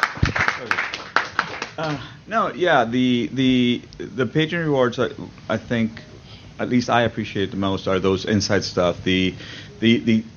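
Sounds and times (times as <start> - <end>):
audience applause: 0.0 - 2.1
speech: 1.8 - 10.3.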